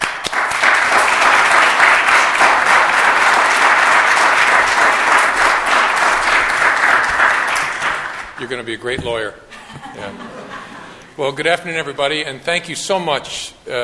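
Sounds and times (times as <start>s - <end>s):
audience applauding a speaker at a lecture event: 0.0s - 8.5s
speech: 8.6s - 10.3s, 11.2s - 13.8s
laughter: 9.5s - 11.2s.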